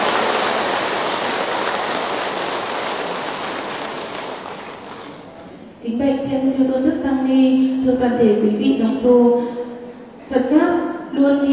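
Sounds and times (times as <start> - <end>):
long loud applause from a large crowd: 0.0 - 5.4
speech: 5.8 - 9.6, 10.3 - 11.5.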